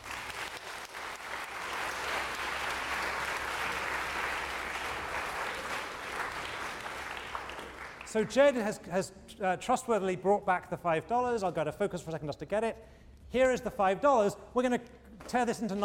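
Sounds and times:
audience applause: 0.0 - 8.2
speech: 8.1 - 15.8.

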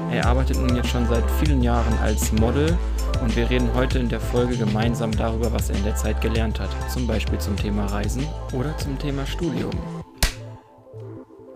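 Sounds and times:
speech: 0.1 - 10.0
hand clap for recording sync: 10.2 - 10.5.

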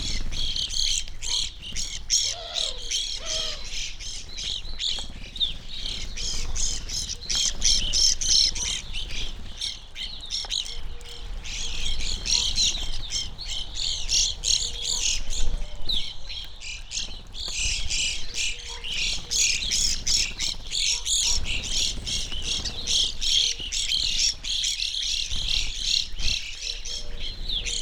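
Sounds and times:
evening grosbeak flock chirping: 0.0 - 27.8.

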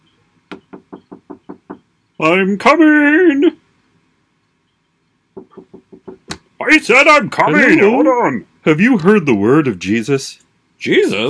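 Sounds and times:
knocking on a door: 0.5 - 1.8, 5.4 - 6.3
speech: 2.2 - 3.6, 6.7 - 11.2.

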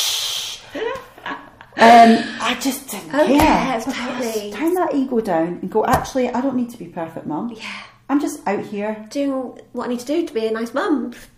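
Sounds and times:
voice imitating breast milk spraying: 0.0 - 0.7
speech: 1.8 - 11.3.

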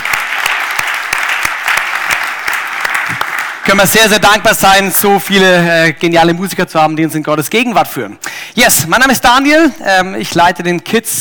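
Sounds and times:
audience applause: 0.0 - 4.2
speech: 3.7 - 11.1.

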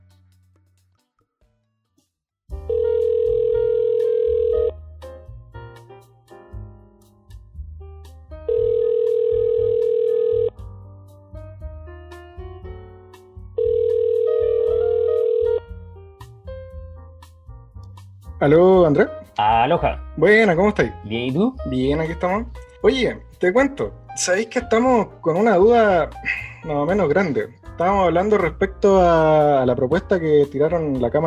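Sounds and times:
soft music: 2.5 - 31.2
phone ringback tone while calling: 2.7 - 4.7, 8.5 - 10.5, 13.6 - 15.6
speech: 18.4 - 31.2.

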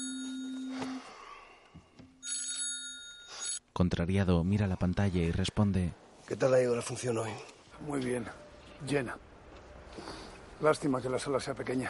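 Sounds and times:
telephone ringing with trilling bell tones: 0.0 - 1.1, 2.2 - 3.6
speech: 3.8 - 9.3, 9.9 - 11.8.

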